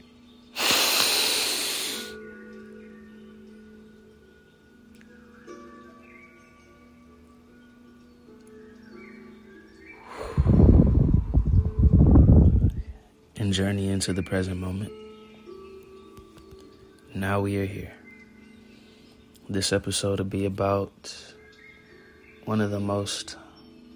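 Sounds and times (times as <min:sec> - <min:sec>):
deep breath taken together: 0:00.5 - 0:02.3, 0:09.9 - 0:12.4
speech: 0:13.6 - 0:15.0, 0:17.2 - 0:18.0, 0:19.5 - 0:21.3, 0:22.5 - 0:23.4.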